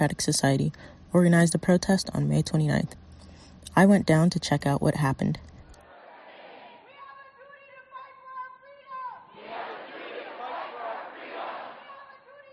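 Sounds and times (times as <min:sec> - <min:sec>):
speech: 0:00.0 - 0:03.0, 0:03.7 - 0:05.5
protest crowd gathering: 0:05.8 - 0:06.9, 0:09.2 - 0:12.3.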